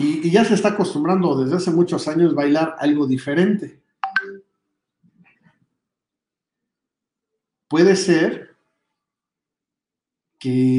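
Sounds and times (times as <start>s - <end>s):
speech: 0.2s - 3.8s, 7.7s - 8.5s, 10.4s - 10.7s
phone notification tone from incoming work messages: 4.0s - 4.4s.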